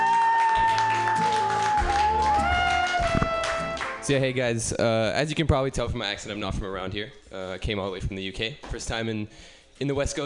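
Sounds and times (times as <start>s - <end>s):
audience applause: 0.0s - 4.0s
speech: 4.1s - 10.2s.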